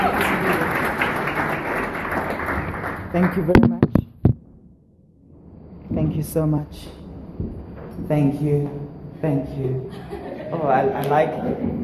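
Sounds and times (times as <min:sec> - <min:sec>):
audience clapping hands: 0:00.0 - 0:03.7
speech: 0:03.1 - 0:04.0, 0:06.0 - 0:11.8
laughter: 0:09.9 - 0:11.8.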